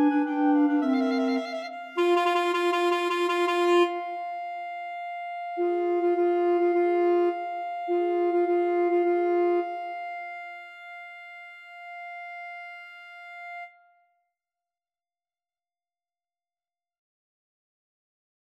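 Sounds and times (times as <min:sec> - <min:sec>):
clarinet trio playing: 0:00.0 - 0:13.7.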